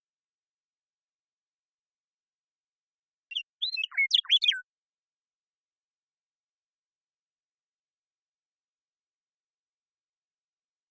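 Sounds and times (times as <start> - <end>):
western meadowlark fluting song: 3.3 - 4.7.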